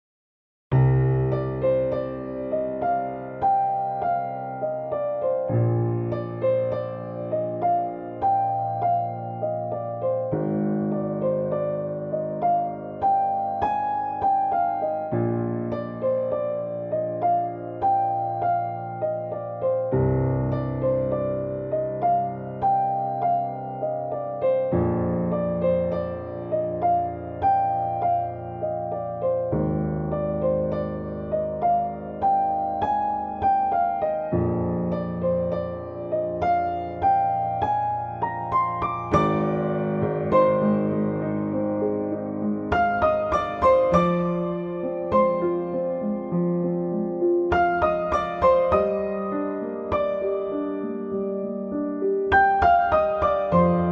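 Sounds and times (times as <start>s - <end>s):
piano tutorial: 0.7s - 53.8s.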